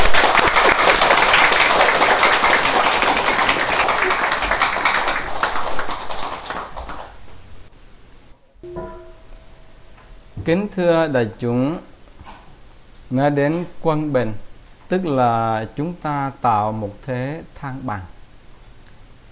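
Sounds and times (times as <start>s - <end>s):
audience applause: 0.0s - 7.2s
speech: 10.5s - 11.9s, 13.1s - 18.1s.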